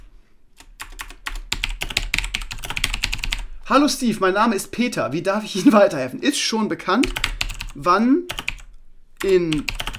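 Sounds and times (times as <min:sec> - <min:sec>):
typing on a computer keyboard in a Telekom online support chat: 0:00.6 - 0:03.5, 0:07.0 - 0:09.9
speech: 0:03.7 - 0:08.4, 0:09.2 - 0:09.8.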